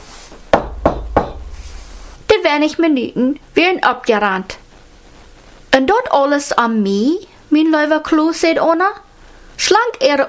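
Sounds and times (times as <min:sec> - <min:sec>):
knocking on a door: 0:00.5 - 0:02.0
speech: 0:02.5 - 0:04.6, 0:05.8 - 0:09.0, 0:09.6 - 0:10.2.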